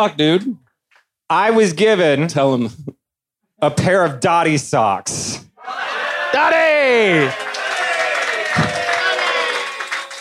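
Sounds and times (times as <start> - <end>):
speech: 0.0 - 0.6, 1.3 - 3.0, 3.6 - 5.4, 6.3 - 7.5
live audience cheering and applauding: 5.6 - 10.1.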